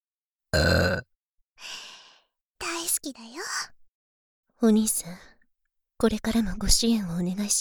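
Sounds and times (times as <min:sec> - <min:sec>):
low throaty voiced burp: 0:00.5 - 0:01.1
speech: 0:04.6 - 0:05.3, 0:06.0 - 0:07.6.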